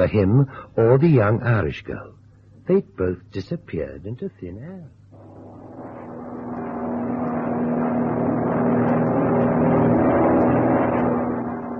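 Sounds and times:
speech: 0.0 - 5.0
airplane engine droning in flight: 5.0 - 11.7.

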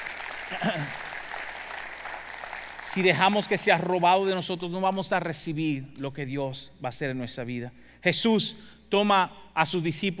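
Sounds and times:
audience applause: 0.0 - 4.3
speech: 0.5 - 1.0, 3.0 - 10.1.

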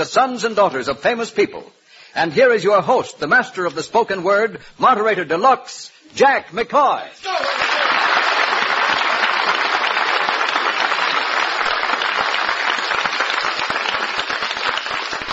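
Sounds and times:
speech: 0.0 - 7.7
studio audience applause: 7.2 - 15.3.

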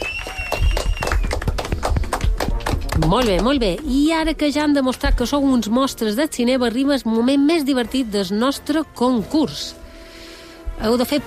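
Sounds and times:
audience applause: 0.0 - 3.5
speech: 3.0 - 9.8, 10.8 - 11.2.

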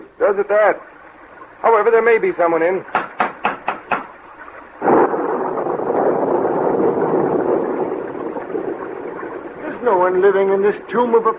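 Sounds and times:
speech: 0.3 - 0.9, 1.6 - 3.0, 10.1 - 11.3
sharp knocks: 2.9 - 4.2
thunder during a heavy storm: 4.1 - 11.3.

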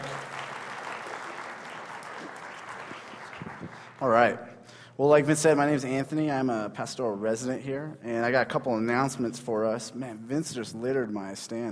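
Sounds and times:
audience applause: 0.0 - 4.0
speech: 4.0 - 11.7.

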